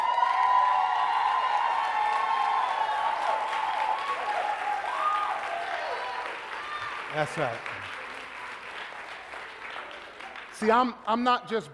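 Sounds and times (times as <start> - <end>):
cheers and whoops: 0.0 - 7.2
crowd applauding: 0.0 - 11.0
speech: 7.1 - 7.8, 10.6 - 11.7.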